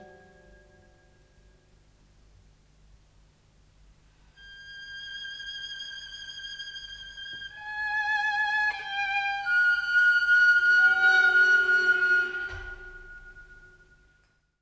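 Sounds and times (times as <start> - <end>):
violin and orchestra: 4.4 - 13.8.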